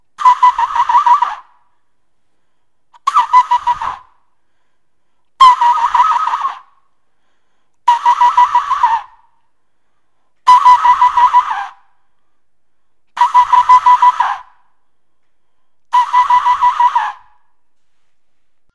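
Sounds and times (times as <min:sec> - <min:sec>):
globular flute: 0:00.2 - 0:01.6, 0:03.0 - 0:04.2, 0:05.4 - 0:06.8, 0:07.9 - 0:09.3, 0:10.4 - 0:11.9, 0:13.2 - 0:14.6, 0:15.9 - 0:18.0.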